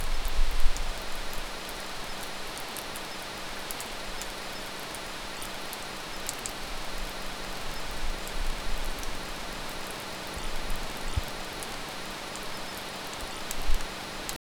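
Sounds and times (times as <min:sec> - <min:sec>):
rain: 0:00.0 - 0:14.4.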